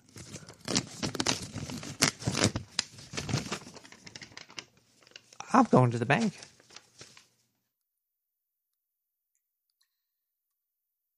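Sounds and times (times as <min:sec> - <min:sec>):
paper check torn along its perforated lines: 0:00.5 - 0:02.6
speech: 0:05.6 - 0:06.5.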